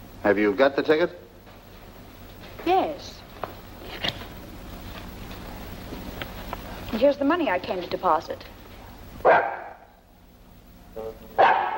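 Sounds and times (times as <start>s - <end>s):
speech: 0.2s - 1.3s, 2.6s - 3.2s, 6.9s - 8.5s, 9.2s - 9.5s
dog barking: 9.2s - 10.0s, 11.4s - 11.7s.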